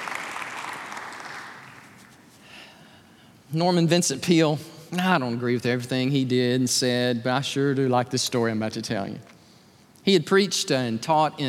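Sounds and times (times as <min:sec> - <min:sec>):
crowd applauding: 0:00.0 - 0:02.1
speech: 0:03.5 - 0:09.4, 0:10.0 - 0:11.4.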